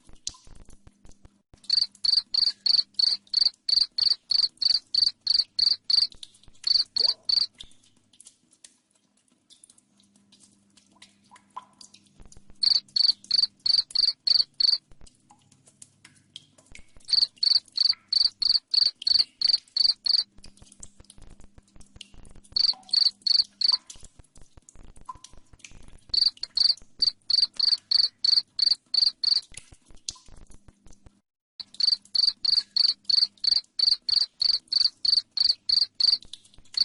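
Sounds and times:
faint ticks: 0.3 - 36.8
cricket chirping: 1.6 - 7.5, 12.6 - 14.8, 17.1 - 20.2, 22.6 - 23.8, 26.1 - 29.4, 31.6 - 36.2.

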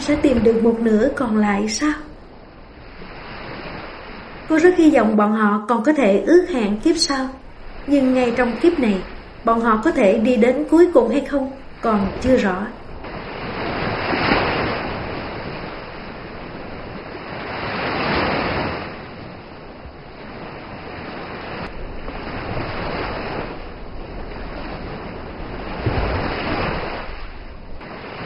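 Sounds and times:
speech: 0.0 - 2.1, 4.5 - 12.8
heavy waves crashing against the shore: 0.0 - 28.2
wind: 0.0 - 28.2.

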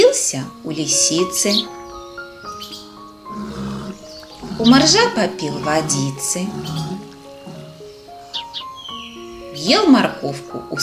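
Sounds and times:
speech: 0.3 - 1.8, 4.6 - 7.1, 9.6 - 10.8
lion roaring behind bars at a zoo: 3.3 - 8.1.

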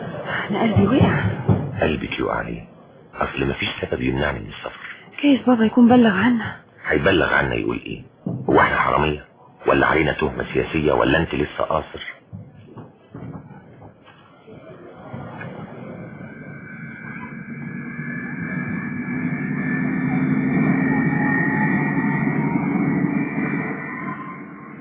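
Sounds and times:
speech: 0.5 - 12.5
airplane cabin engine drone aboard an EgyptAir flight: 14.8 - 24.7.

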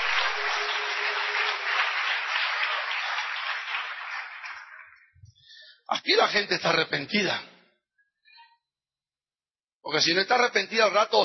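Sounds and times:
audience applauding: 0.0 - 5.2
speech: 5.9 - 7.5, 9.9 - 11.2.

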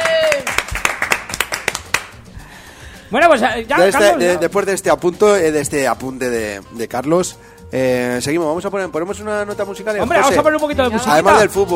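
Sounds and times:
hand claps in a studio: 0.0 - 2.4
speech: 3.1 - 11.7.

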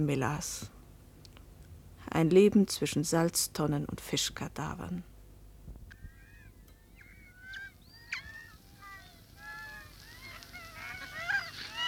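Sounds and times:
speech: 0.0 - 0.8, 2.1 - 5.1
flock of seagulls calling: 5.9 - 11.8.

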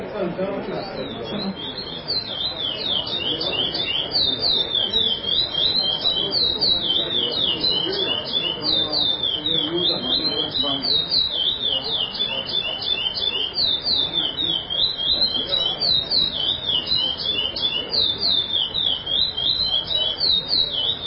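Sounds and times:
chestnut-bellied seed finch song: 0.8 - 21.0.

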